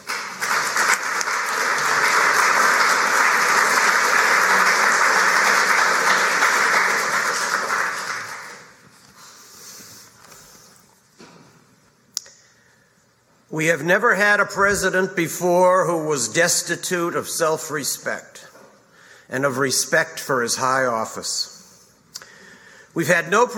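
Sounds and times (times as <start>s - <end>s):
audience applause welcoming a speaker: 0.0s - 8.8s
speech: 13.6s - 18.5s, 19.3s - 21.5s, 23.0s - 23.5s.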